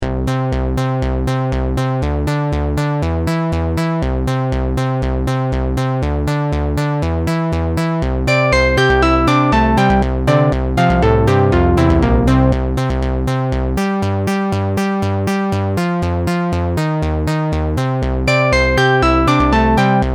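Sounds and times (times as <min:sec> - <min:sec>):
bass melody: 0:00.0 - 0:20.1.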